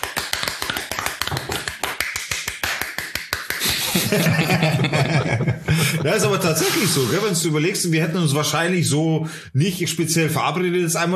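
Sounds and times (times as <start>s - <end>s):
hands clapping: 0.0s - 5.3s
laughter: 3.6s - 7.4s
speech: 4.1s - 11.1s.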